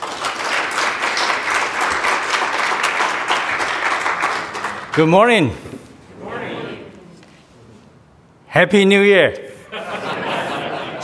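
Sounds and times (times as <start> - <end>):
audience applause welcoming a guest speaker: 0.0 - 5.2
speech: 5.0 - 5.7, 8.6 - 9.4
laughter: 9.5 - 11.0.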